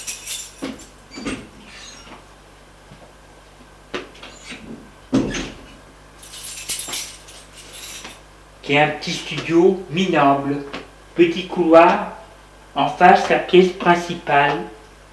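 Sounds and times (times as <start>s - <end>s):
door being opened: 0.5s - 2.2s, 4.2s - 5.7s
speech: 8.7s - 12.2s, 12.8s - 14.8s.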